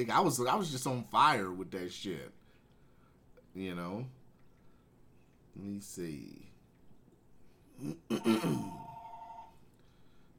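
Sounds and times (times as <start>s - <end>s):
speech: 0.0s - 2.4s, 3.6s - 4.2s, 5.6s - 6.5s, 7.8s - 8.8s
man grunting: 7.8s - 8.8s
house telephone ringing: 8.2s - 9.6s.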